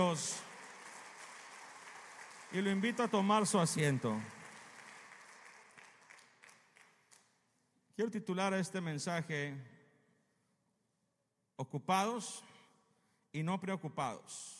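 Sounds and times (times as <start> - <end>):
speech: 0.0 - 0.5, 2.5 - 4.4, 8.0 - 9.8, 11.6 - 12.5, 13.3 - 14.5
audience applauding loudly: 0.0 - 7.4.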